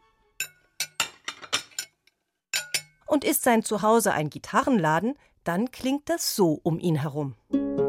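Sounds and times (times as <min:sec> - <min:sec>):
glass and dishes clinking in a kitchen: 0:00.4 - 0:03.0
speech: 0:03.1 - 0:07.8.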